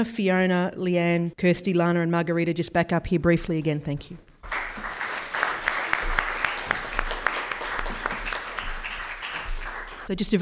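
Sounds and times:
speech: 0.0s - 4.3s, 10.1s - 10.4s
audience applause: 4.4s - 10.1s.

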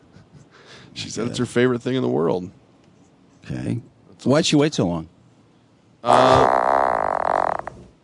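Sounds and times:
speech: 1.0s - 2.6s, 3.5s - 5.2s, 6.0s - 6.6s
frog croaking: 6.0s - 7.8s.

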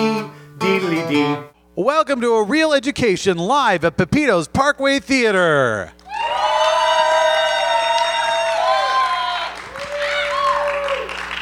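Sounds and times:
speech: 0.6s - 6.0s
live theater crowd applauding and cheering: 6.0s - 11.3s.

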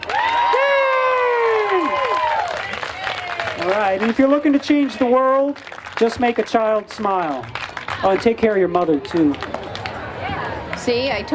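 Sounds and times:
audience cheering with long sustained whoops: 0.0s - 4.2s
steady wash of crowd noise: 0.0s - 11.3s
scattered clapping: 1.4s - 10.1s
speech: 3.6s - 9.5s, 10.8s - 11.3s.

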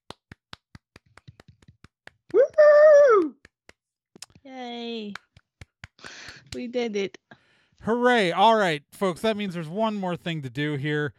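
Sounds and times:
small group clapping: 0.0s - 6.8s
speech: 4.5s - 5.2s, 6.5s - 11.1s.

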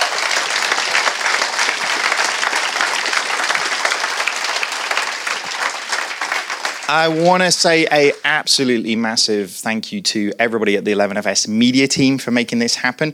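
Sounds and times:
applause: 0.0s - 8.3s
speech: 6.9s - 13.1s.

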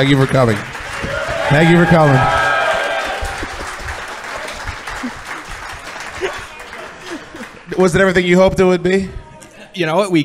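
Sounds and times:
speech: 0.0s - 0.8s, 1.5s - 2.4s, 7.8s - 9.2s, 9.8s - 10.2s
audience applause: 0.0s - 7.6s.

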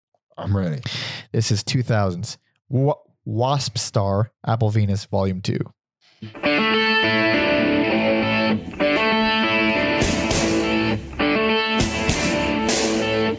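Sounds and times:
speech: 0.4s - 6.4s
distorted guitars in rock music: 6.2s - 13.3s
punchy steady rock drums: 6.4s - 13.3s.

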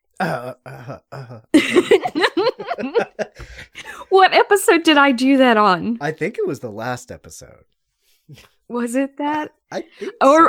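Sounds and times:
person clearing throat: 0.2s - 1.4s
speech: 0.2s - 2.3s, 4.2s - 10.4s
laughter: 0.7s - 4.2s.

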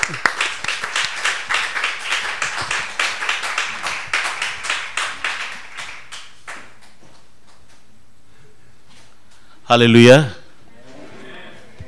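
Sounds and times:
church congregation applauding to welcome a speaker: 0.0s - 7.0s
speech: 0.1s - 0.3s, 9.7s - 10.4s.

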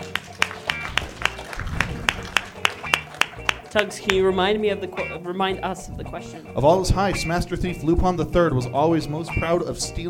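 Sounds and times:
rhythmic audience clapping: 0.0s - 5.2s
speech: 3.7s - 10.0s.

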